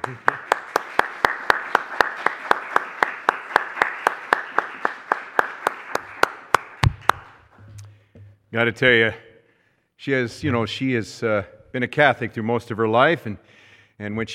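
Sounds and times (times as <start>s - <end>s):
audience applause: 0.0s - 7.5s
speech: 0.1s - 0.4s, 8.5s - 9.2s, 10.0s - 14.3s.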